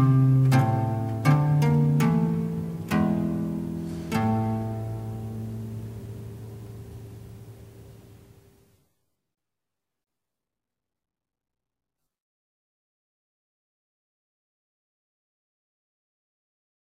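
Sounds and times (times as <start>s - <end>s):
harpsichord sonata: 0.0s - 8.5s.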